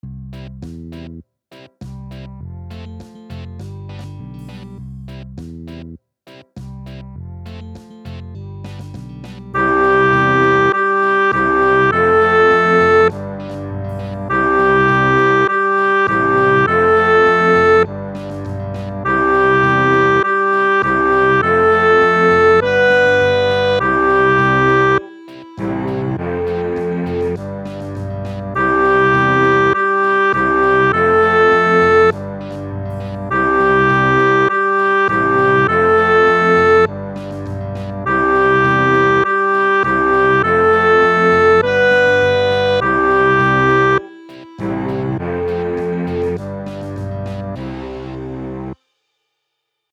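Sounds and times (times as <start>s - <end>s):
reggae piece for clarinet: 9.4s - 48.8s.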